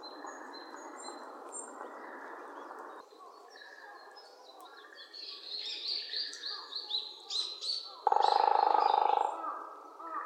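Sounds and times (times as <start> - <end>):
Japanese green woodpecker calling with whistled notes: 7.3 - 9.4.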